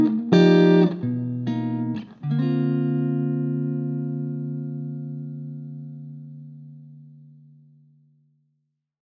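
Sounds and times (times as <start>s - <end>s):
jazz blues lead with reverb: 0.0s - 7.8s.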